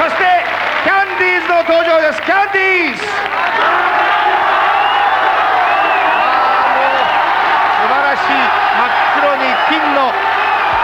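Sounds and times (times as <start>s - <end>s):
audience cheering at a farewell concert: 0.0s - 10.8s
laughter: 0.0s - 10.8s
high whoops and shouts from concert crowd: 3.4s - 10.8s.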